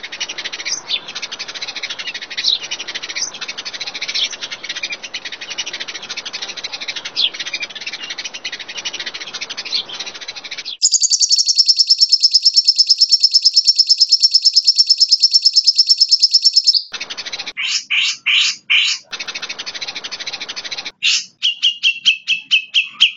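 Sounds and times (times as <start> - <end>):
bird song with trill: 0.0 - 23.1.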